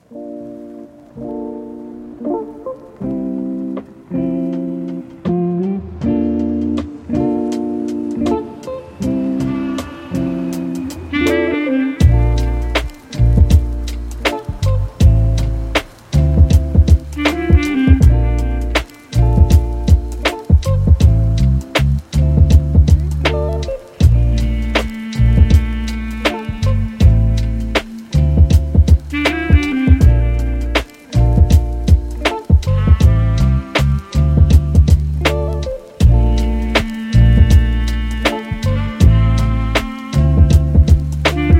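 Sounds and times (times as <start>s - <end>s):
lofi chill beats with reeds: 0.0s - 41.5s.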